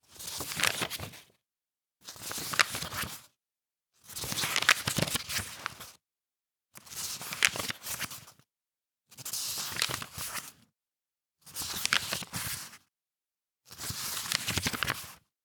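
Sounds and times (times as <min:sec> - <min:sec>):
pages turning: 0:00.4 - 0:01.2, 0:02.2 - 0:03.1, 0:04.3 - 0:05.8, 0:07.2 - 0:08.2, 0:09.6 - 0:10.5, 0:11.6 - 0:12.7, 0:13.8 - 0:15.1.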